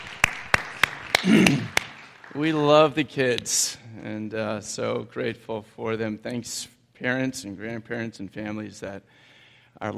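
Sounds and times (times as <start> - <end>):
audience clapping as children leave: 0.0 - 3.5
speech: 1.2 - 1.7, 2.3 - 9.9.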